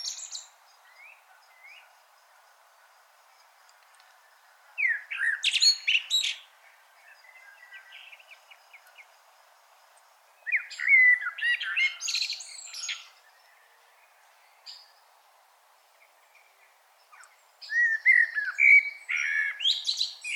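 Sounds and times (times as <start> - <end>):
common blackbird Turdus merula warbling with scratchy twitters: 0.0 - 1.9, 4.8 - 9.1, 10.4 - 15.0, 16.0 - 20.3.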